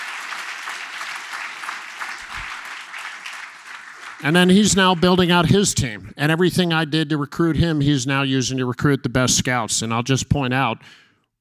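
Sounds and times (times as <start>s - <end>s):
audience applause: 0.0s - 5.7s
speech: 4.2s - 11.0s.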